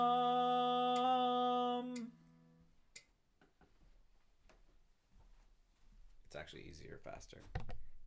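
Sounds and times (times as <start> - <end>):
slow tenor melody: 0.0 - 2.8.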